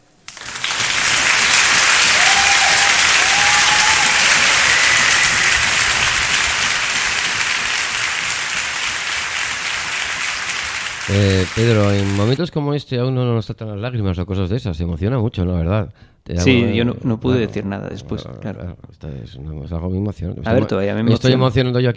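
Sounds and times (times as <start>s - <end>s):
sustained applause from a large audience at an afternoon concert: 0.3s - 12.4s
speech: 11.2s - 21.9s.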